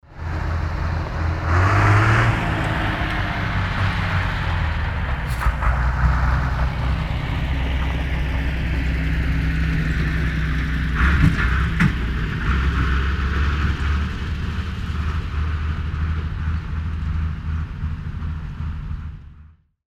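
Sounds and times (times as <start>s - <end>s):
truck leaving a site: 0.0s - 19.6s.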